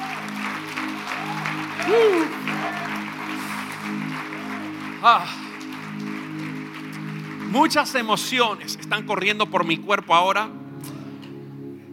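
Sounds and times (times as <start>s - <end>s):
audience applause: 0.0s - 9.0s
speech: 1.8s - 2.5s, 5.0s - 5.4s, 7.5s - 10.6s.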